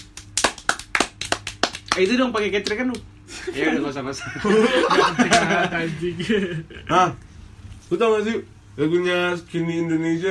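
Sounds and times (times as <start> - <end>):
hand clapping: 0.0 - 3.1, 5.2 - 5.6
speech: 2.0 - 7.3, 7.9 - 10.2
laughter: 4.2 - 6.9.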